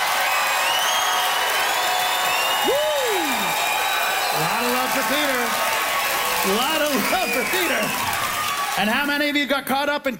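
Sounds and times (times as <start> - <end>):
audience applauding and cheering in a vote by applause on making Saskatoon a capital city: 0.0 - 9.6
speech: 4.4 - 5.8, 6.4 - 8.2, 8.8 - 10.1.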